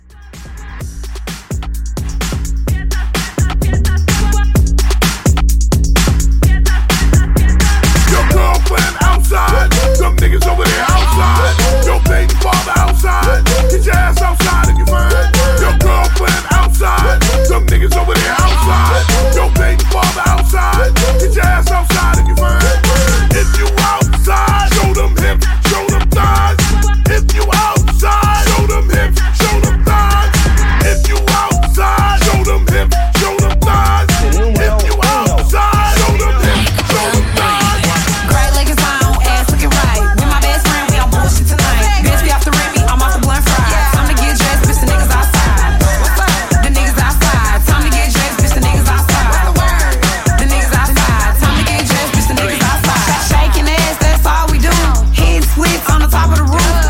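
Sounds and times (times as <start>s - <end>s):
drum beat at 128 BPM: 0.1s - 56.8s.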